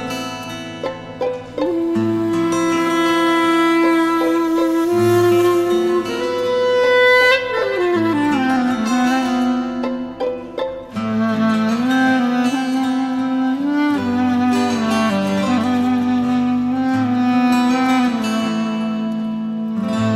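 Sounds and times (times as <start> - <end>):
sad flute melody: 0.1 - 20.1.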